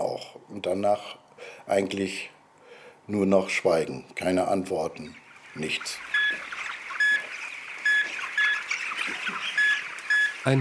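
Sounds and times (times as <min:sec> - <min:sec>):
speech: 0:00.2 - 0:02.4, 0:03.1 - 0:06.5
chicks chirping in a chicken barn: 0:05.0 - 0:10.5.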